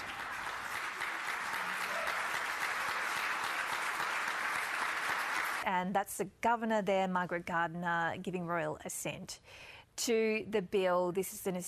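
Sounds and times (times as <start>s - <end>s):
applause at treaty signing: 0.0s - 5.7s
speech: 5.6s - 11.6s.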